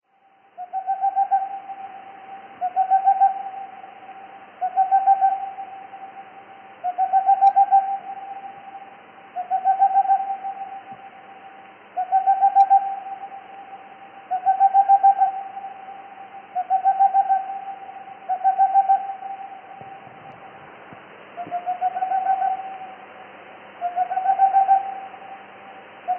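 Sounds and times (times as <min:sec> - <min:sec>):
boreal owl hooting: 0:00.6 - 0:20.6, 0:21.3 - 0:26.1.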